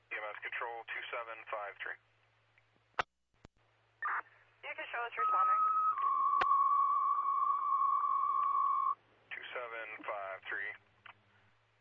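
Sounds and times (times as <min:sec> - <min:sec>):
speech: 0:00.6 - 0:02.1, 0:04.6 - 0:05.8
radio dispatch cancellation tones: 0:04.0 - 0:10.8.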